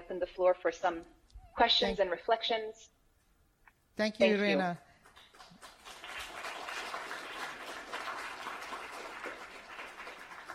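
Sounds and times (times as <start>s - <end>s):
speech: 0.1s - 3.0s, 4.0s - 4.9s
crowd clapping: 4.9s - 10.5s.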